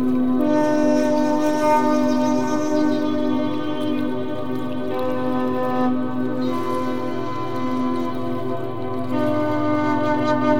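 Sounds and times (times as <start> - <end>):
soft sustained drone music: 0.0 - 10.5.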